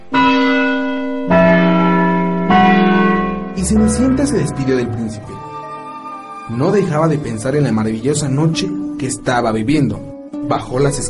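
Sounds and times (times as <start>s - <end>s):
clock chiming deep resonant bell strokes: 0.1s - 5.9s
speech: 3.6s - 5.5s, 6.5s - 11.0s.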